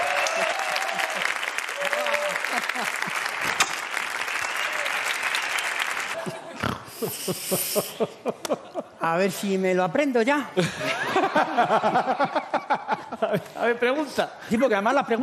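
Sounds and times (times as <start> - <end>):
audience applause: 0.0 - 6.3
laughter: 2.2 - 3.4, 6.2 - 9.0, 10.6 - 13.7
speech: 7.3 - 12.6, 13.3 - 15.2.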